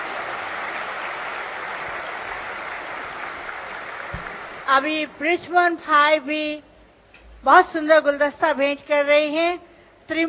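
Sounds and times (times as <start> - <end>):
audience applause as bouquets are presented: 0.0 - 4.9
speech: 4.7 - 6.7, 7.4 - 10.2.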